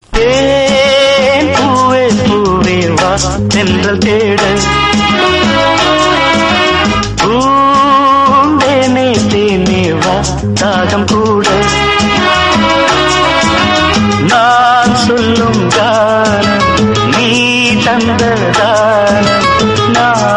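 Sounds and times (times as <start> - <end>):
Tamil song: 0.0 - 20.3.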